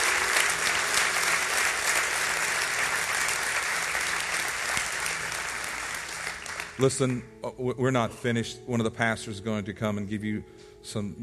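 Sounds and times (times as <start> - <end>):
audience hand clapping: 0.0 - 7.3
speech: 6.8 - 11.2.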